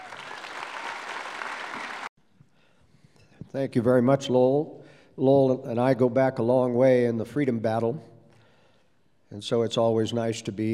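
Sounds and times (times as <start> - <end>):
audience applause welcoming a speaker: 0.0 - 2.1
speech: 3.5 - 8.1, 9.3 - 10.7.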